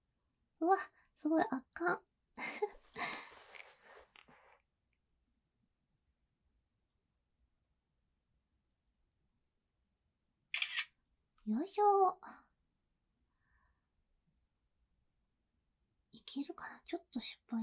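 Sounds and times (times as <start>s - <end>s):
speech: 0.6s - 2.8s, 11.5s - 12.4s, 16.3s - 17.6s
camera shutter clicks: 10.6s - 10.9s.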